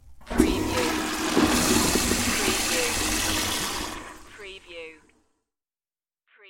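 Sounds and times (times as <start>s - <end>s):
toilet flushing: 0.0s - 4.7s.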